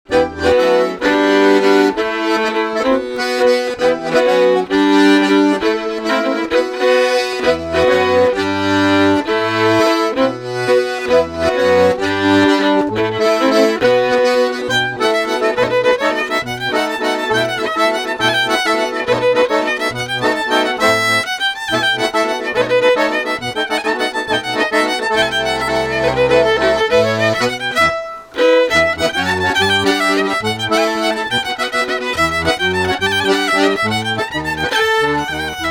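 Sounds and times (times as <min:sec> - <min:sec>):
traditional bourrée dance music from Auvergne: 0:00.1 - 0:35.6.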